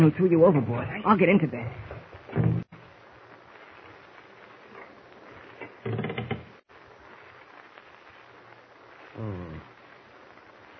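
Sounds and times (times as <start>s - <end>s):
speech: 0.0s - 2.5s
someone trying to open a door, rattling and thumping: 5.8s - 6.5s.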